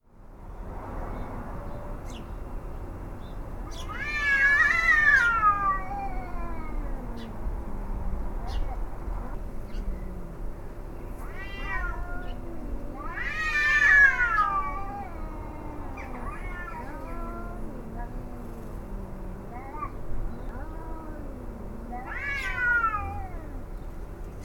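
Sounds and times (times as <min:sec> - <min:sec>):
cats yowling and moaning: 0:03.7 - 0:24.4.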